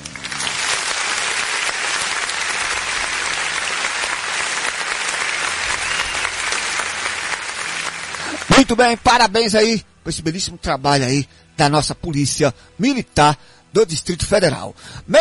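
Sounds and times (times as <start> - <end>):
crowd applause: 0.0 - 8.9
speech: 8.6 - 15.1.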